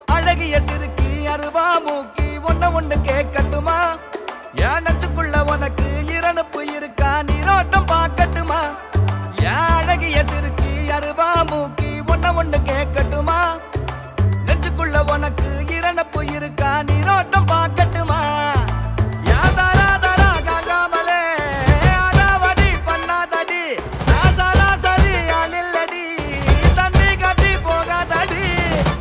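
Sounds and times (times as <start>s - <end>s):
Tamil ringtone background music: 0.0s - 28.9s.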